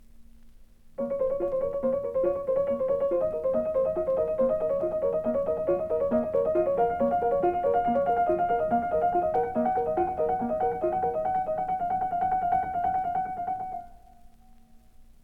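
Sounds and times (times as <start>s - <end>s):
musical improvisations: 1.0s - 14.6s.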